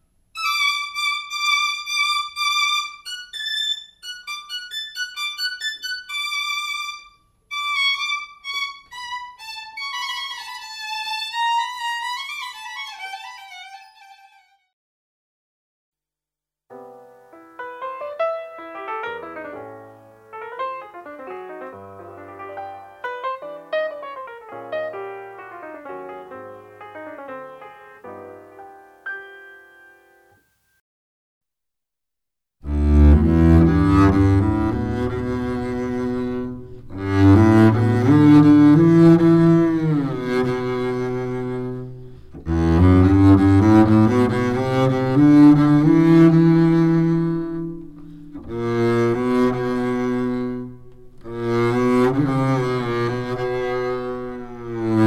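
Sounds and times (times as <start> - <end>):
string instruments: 0.4 - 14.7, 32.6 - 55.0.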